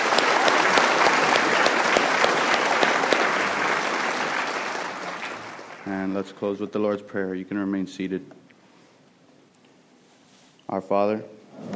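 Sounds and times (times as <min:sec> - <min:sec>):
audience applause: 0:00.0 - 0:06.2
speech: 0:05.9 - 0:08.4, 0:10.7 - 0:11.7.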